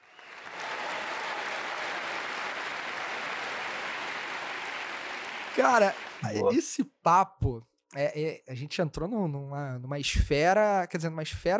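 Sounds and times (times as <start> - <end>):
applause: 0.0 - 6.4
speech: 5.6 - 11.5.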